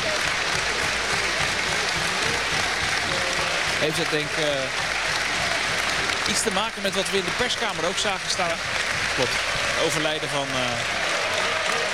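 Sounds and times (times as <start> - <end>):
stadium crowd applauding: 0.0 - 11.9
speech: 3.8 - 4.9, 6.3 - 11.0.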